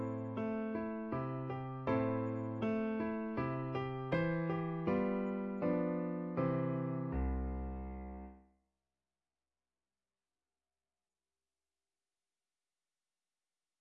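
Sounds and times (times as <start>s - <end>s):
piano waltz: 0.0s - 8.4s.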